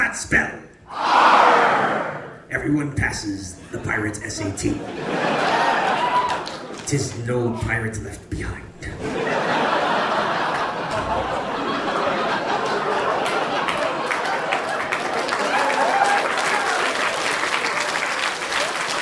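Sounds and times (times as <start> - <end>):
speech: 0.1 - 1.3, 2.6 - 5.6, 6.9 - 9.6
laughter: 3.6 - 7.1, 8.9 - 16.9
smattering of applause: 5.2 - 7.2, 10.3 - 18.9.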